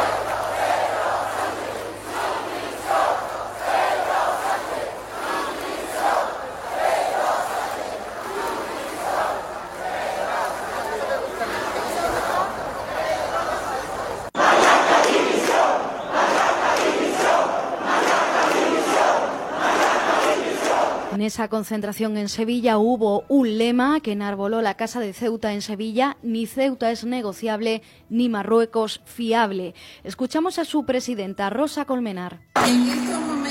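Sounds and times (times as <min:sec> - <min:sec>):
protest crowd shouting demands: 0:00.0 - 0:21.2
speech: 0:21.3 - 0:33.1.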